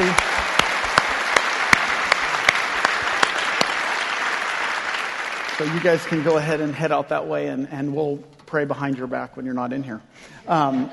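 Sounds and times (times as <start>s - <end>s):
audience round of applause: 0.0s - 7.0s
speech: 5.6s - 10.9s.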